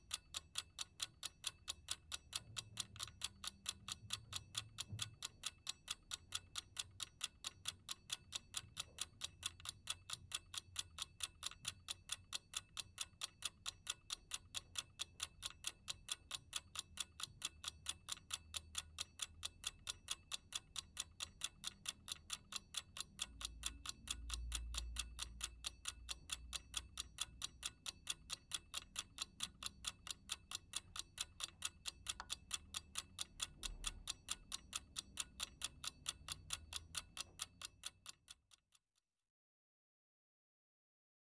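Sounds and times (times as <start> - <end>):
household alarm clock ticking: 0.0 - 38.6.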